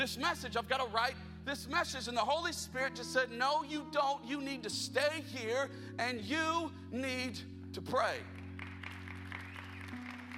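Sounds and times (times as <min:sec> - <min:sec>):
speech: 0:00.0 - 0:08.4
audience applause: 0:08.5 - 0:10.3.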